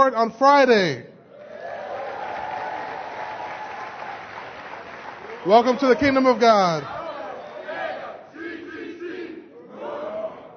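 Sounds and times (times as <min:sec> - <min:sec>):
speech: 0:00.0 - 0:01.1, 0:05.4 - 0:07.0
audience clapping in church: 0:01.3 - 0:06.8.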